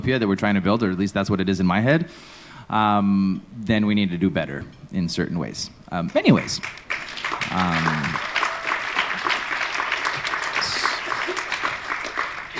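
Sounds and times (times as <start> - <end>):
speech: 0.0 - 6.8, 7.5 - 8.3
audience applause: 6.3 - 12.5.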